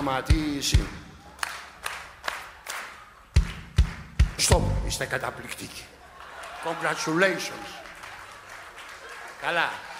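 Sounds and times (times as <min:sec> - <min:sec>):
speech: 0:00.0 - 0:01.1, 0:04.4 - 0:06.0, 0:06.6 - 0:07.8, 0:09.4 - 0:09.9
audience clapping: 0:00.8 - 0:04.5, 0:06.1 - 0:09.9.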